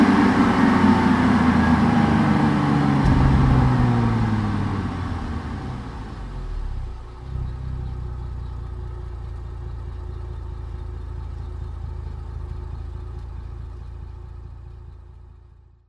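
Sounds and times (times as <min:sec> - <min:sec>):
Cadillac CTS car driving at medium speed, exterior on board: 0:00.1 - 0:08.3.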